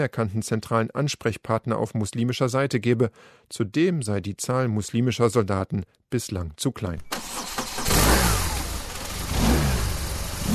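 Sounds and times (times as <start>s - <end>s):
speech: 0.0s - 7.3s
military police motorcycle engines starting and revving: 7.8s - 10.5s.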